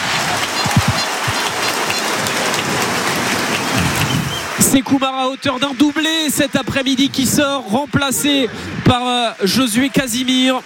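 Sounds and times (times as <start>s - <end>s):
stadium crowd ovation: 0.0s - 10.6s
speech: 4.7s - 10.6s.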